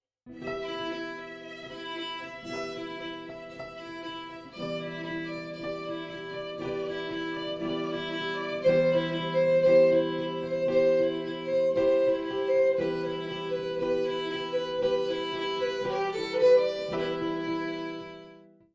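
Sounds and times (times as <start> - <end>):
piano: 0.2 - 18.7
fiddle: 0.3 - 18.6.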